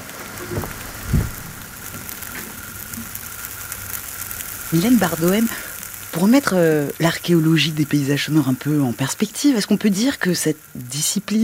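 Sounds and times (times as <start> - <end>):
resin bubbles bursting during combustion: 0.0 - 6.2
speech: 4.7 - 11.4.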